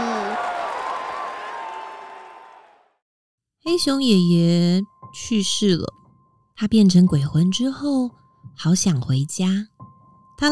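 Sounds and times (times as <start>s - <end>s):
crowd clapping and cheering: 0.0s - 3.0s
speech: 3.6s - 6.0s, 6.6s - 9.8s.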